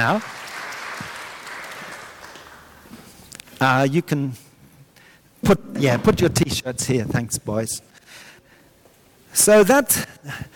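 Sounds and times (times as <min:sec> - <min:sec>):
speech: 0:00.0 - 0:00.4, 0:03.6 - 0:04.4, 0:05.4 - 0:08.2, 0:09.3 - 0:10.5
audience clapping: 0:00.0 - 0:03.0.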